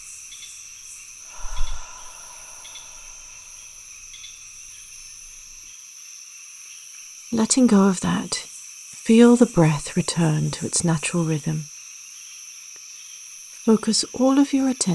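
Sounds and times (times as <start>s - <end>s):
rainforest ambience: 0.0s - 14.9s.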